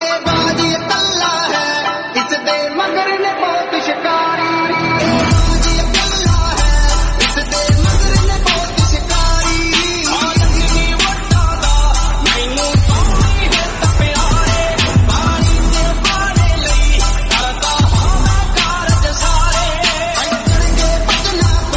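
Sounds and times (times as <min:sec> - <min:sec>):
Islamic music: 0:00.0 - 0:21.7.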